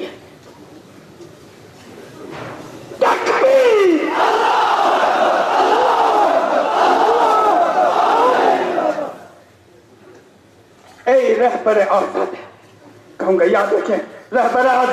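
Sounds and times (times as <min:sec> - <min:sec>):
crowd at a rally shouting slogans in unison: 0:03.1 - 0:09.4
speech: 0:11.6 - 0:12.4, 0:13.3 - 0:14.9.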